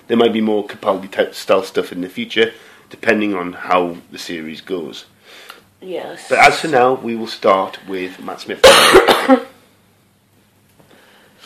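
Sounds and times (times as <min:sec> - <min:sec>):
speech: 0:00.1 - 0:09.5
person coughing: 0:08.6 - 0:09.6.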